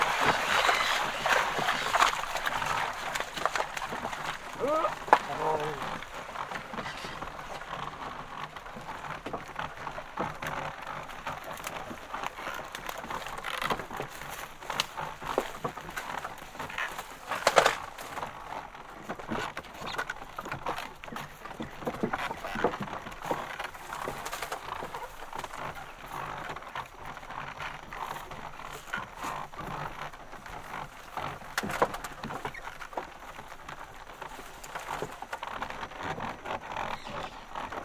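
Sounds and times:
water splashing: 0.0s - 7.7s
oxen pulling wooden cart through swamp: 0.0s - 37.8s
cart drivers speaking: 4.6s - 6.0s.

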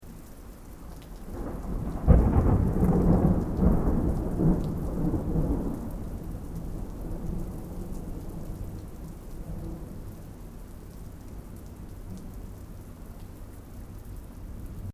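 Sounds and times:
distant thunder: 1.3s - 10.0s.

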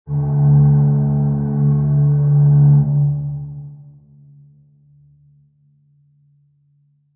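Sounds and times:
large ship fog horn: 0.1s - 4.4s.

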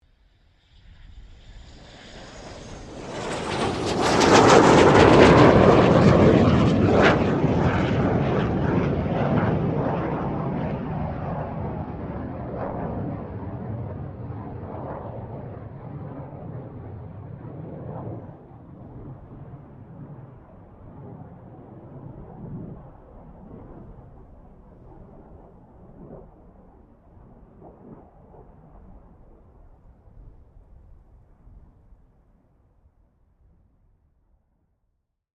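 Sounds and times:
FA-18 Hornet jet passing: 0.3s - 28.8s.

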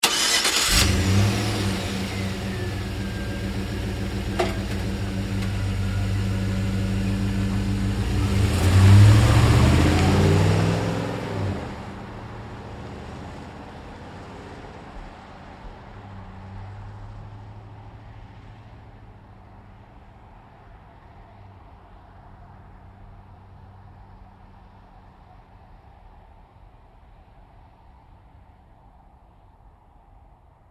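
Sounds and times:
GMC Savana truck starting and driving away: 0.0s - 15.2s.

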